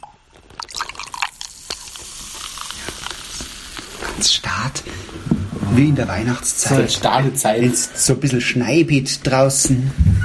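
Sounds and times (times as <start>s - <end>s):
wheat beer pouring into a glass: 0.0s - 4.0s
beer foam fizzing: 0.0s - 4.4s
speech: 4.2s - 10.2s.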